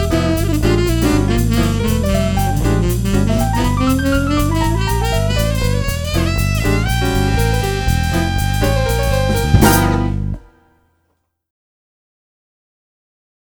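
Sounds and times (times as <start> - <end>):
swing music: 0.0 - 10.6.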